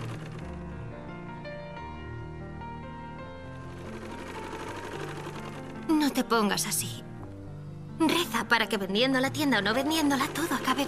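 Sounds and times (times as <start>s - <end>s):
sewing machine stitching a cloth cover for a Quran: 0.0s - 0.8s, 3.7s - 6.4s, 9.4s - 10.8s
speech: 6.0s - 7.0s, 8.0s - 10.8s.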